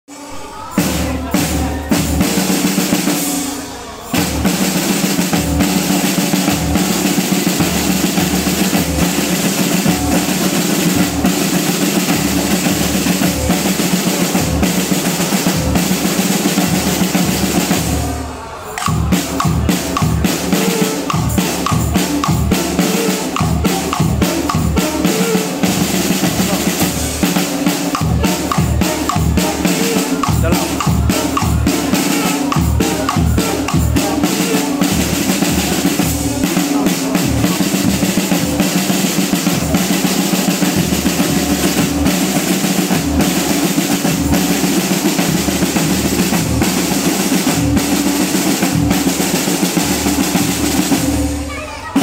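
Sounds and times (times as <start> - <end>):
drum performance: 0.1 - 52.0.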